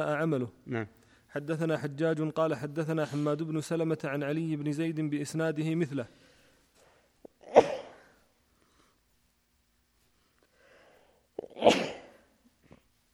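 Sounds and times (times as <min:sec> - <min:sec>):
speech: 0:00.0 - 0:06.3
person sneezing: 0:07.4 - 0:08.2, 0:11.4 - 0:12.3.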